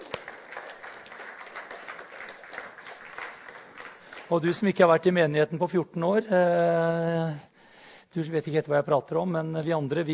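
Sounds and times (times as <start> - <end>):
audience clapping: 0.0 - 4.8
speech: 4.3 - 7.5, 8.1 - 10.1.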